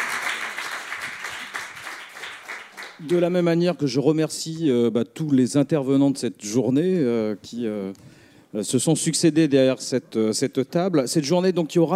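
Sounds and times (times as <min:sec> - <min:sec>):
audience applause for closing panel participants: 0:00.0 - 0:03.0
speech: 0:03.0 - 0:11.9.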